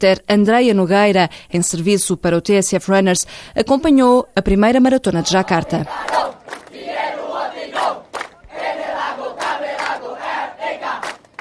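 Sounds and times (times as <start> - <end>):
speech: 0.0 - 6.4
crowd singing before marathon start: 5.1 - 11.2.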